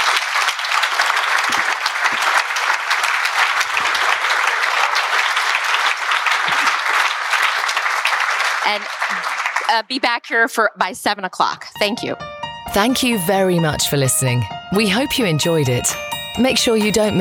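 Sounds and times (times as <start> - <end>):
audience applause for a panel: 0.0 - 9.9
speech: 8.7 - 17.1.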